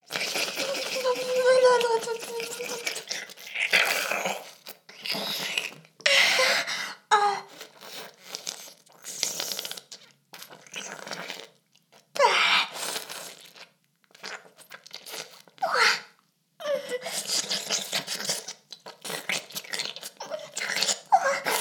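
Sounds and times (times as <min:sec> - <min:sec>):
oral sex sounds: 0:00.0 - 0:09.9, 0:14.2 - 0:21.5.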